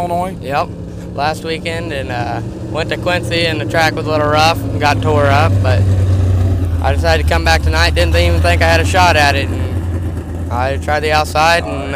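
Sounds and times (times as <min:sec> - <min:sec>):
IMCA Sport Compact race car engine: 0:00.0 - 0:11.9.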